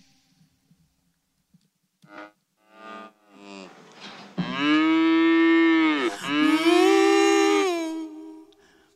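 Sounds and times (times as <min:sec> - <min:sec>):
cow mooing: 0:02.1 - 0:07.8.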